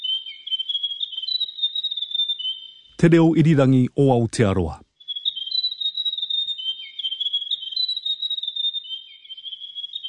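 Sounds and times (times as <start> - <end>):
grey warbler singing: 0.0 - 3.0, 5.0 - 10.0
speech: 3.0 - 4.8.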